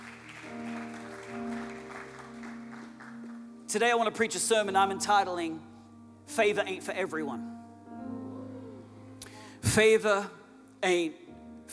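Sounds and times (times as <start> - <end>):
audience applause: 0.0 - 3.5
sustained organ or keyboard chords: 0.0 - 6.3, 7.2 - 9.8
speech: 3.7 - 5.7, 6.3 - 7.5, 9.8 - 11.7.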